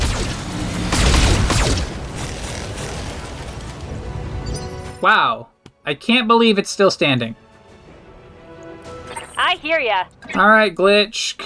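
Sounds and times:
weapons firing in a mech combat video game: 0.0 - 2.9
speech: 5.0 - 7.4, 9.4 - 11.4.

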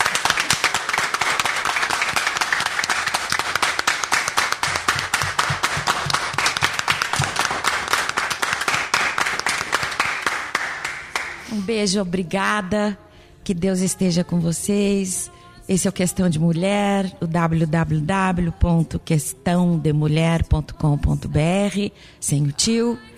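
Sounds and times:
audience clapping: 0.0 - 11.5
speech: 11.7 - 23.1.

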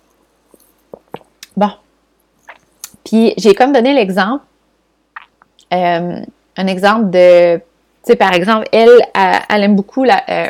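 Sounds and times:
person sipping a drink: 0.5 - 1.5
speech: 1.6 - 1.8, 3.1 - 4.5, 5.7 - 10.4.

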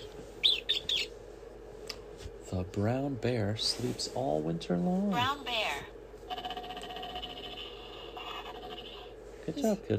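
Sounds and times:
mouse squeaking: 0.0 - 1.2
low steady hum: 0.0 - 9.9
speech: 2.5 - 5.6, 9.5 - 9.9.

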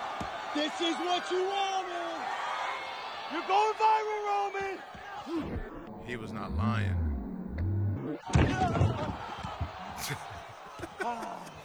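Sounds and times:
crowd roaring: 0.0 - 11.6
speech: 0.6 - 1.8, 3.3 - 7.0, 10.0 - 10.4, 11.0 - 11.6
laughter: 3.3 - 11.6
wrestler's frog splash crashing onto table: 8.2 - 10.4.

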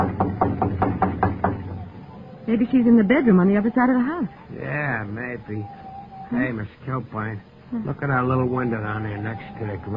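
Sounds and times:
knocking on a kitchen door: 0.0 - 1.8
speech: 2.5 - 9.9.

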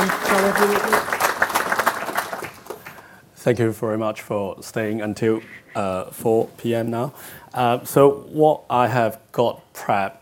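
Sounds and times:
speech: 0.0 - 1.2, 3.4 - 10.2
conference audience applause after a speaker: 0.0 - 3.1.

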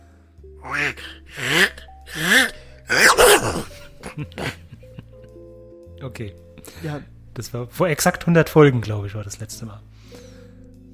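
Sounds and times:
speech: 0.6 - 1.8, 3.4 - 4.5, 6.2 - 10.2
voice imitating a cartoon duck sneezing: 0.6 - 4.6
laughter: 3.7 - 5.4.

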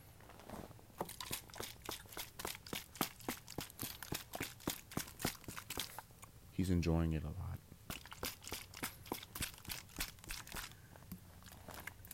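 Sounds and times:
plastic bottle being crinkled: 0.4 - 6.1, 7.9 - 12.1
speech: 6.6 - 7.5.

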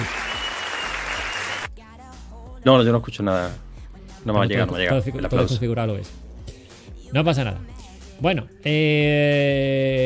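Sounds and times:
dense crowd applause: 0.0 - 1.7
speech: 2.6 - 3.6, 4.2 - 6.2, 7.1 - 10.0.

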